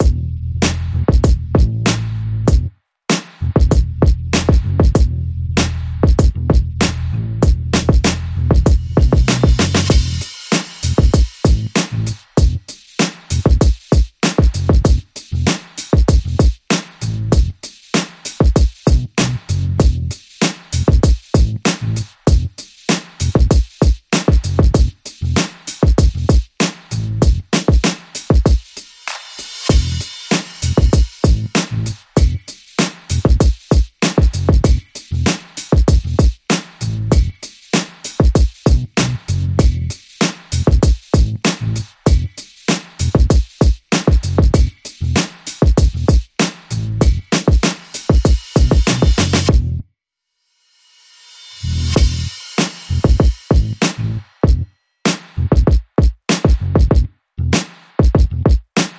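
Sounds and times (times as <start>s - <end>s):
bass: 0.0s - 13.7s, 14.5s - 17.7s, 18.8s - 22.6s, 23.2s - 23.6s, 24.4s - 27.6s, 29.5s - 32.5s, 33.1s - 33.5s, 34.3s - 37.5s, 38.6s - 42.4s, 43.0s - 43.4s, 44.2s - 47.4s, 48.6s - 49.9s, 51.6s - 54.7s, 55.4s - 55.7s, 56.6s - 57.6s, 58.2s - 58.6s
drums: 0.0s - 49.7s, 51.0s - 58.9s.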